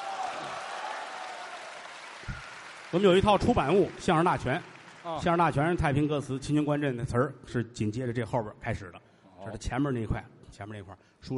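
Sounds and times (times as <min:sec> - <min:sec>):
audience applause: 0:00.0 - 0:05.8
speech: 0:02.9 - 0:11.3.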